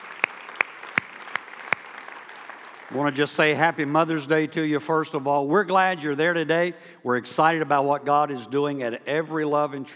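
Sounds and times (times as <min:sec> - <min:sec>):
sharp claps: 0:00.0 - 0:03.0
church congregation applauding to welcome joining campuses: 0:00.0 - 0:04.0
speech: 0:02.9 - 0:09.9.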